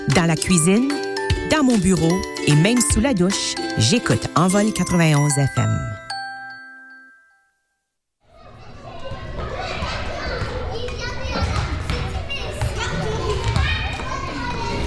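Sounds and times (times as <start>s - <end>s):
speech: 0.2s - 5.9s
chiming tone: 2.0s - 7.8s
children shouting in a school gym: 8.3s - 14.8s.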